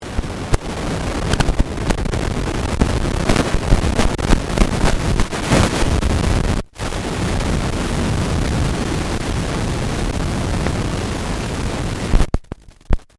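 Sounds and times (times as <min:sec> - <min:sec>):
electronic pops: 0:00.0 - 0:07.0, 0:12.1 - 0:13.1
electronic noise: 0:00.0 - 0:13.1.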